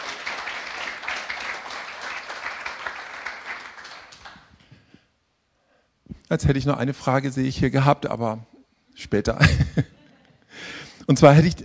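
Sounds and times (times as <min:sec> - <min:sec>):
audience applause: 0:00.0 - 0:04.6
speech: 0:06.3 - 0:09.9, 0:11.1 - 0:11.6.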